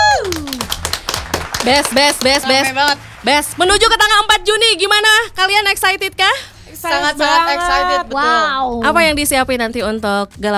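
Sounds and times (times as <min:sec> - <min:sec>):
people whooping and cheering: 0:00.0 - 0:01.0
audience clapping: 0:00.0 - 0:04.2
speech: 0:01.6 - 0:10.5.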